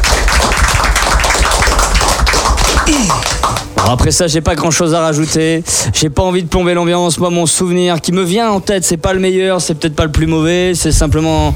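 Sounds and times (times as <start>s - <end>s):
crowd applauding: 0.0s - 4.1s
speech: 3.9s - 11.5s.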